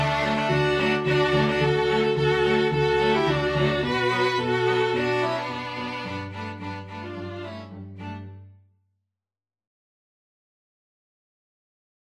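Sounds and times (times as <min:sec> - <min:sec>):
string quintet playing: 0:00.0 - 0:08.5.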